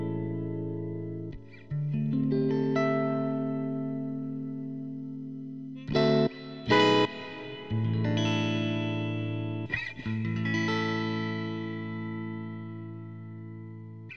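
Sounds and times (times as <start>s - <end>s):
Stratocaster 11th chords with variable strum: 0.0s - 14.1s.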